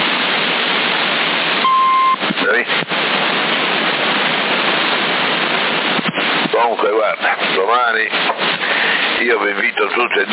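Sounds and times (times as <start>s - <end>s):
constant wash of hissing static: 0.0s - 10.3s
crackles: 0.0s - 10.3s
single short steady radio beep: 1.6s - 2.4s
speech: 9.2s - 10.3s.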